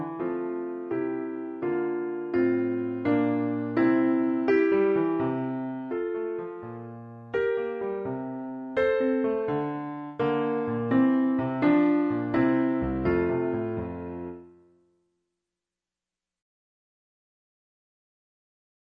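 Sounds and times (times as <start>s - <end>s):
musical accompaniment: 0.0s - 14.6s.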